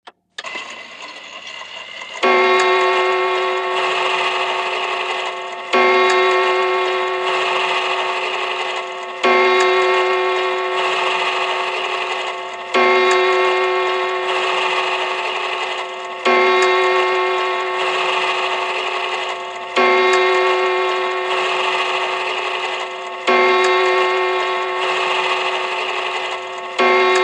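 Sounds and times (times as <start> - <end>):
grandfather clock striking twelve: 0.4 - 27.2.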